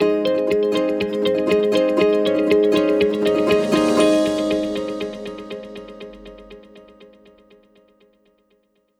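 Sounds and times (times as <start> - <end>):
corporate transition music: 0.8 - 7.4.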